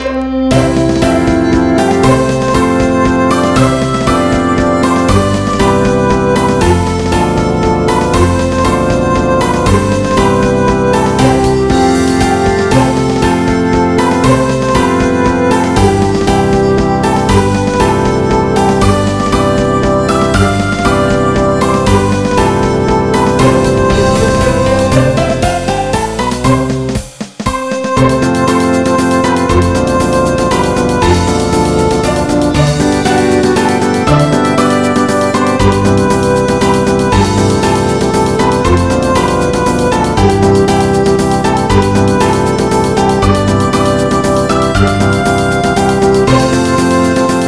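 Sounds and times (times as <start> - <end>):
state song in MIDI: 0.0 - 47.4.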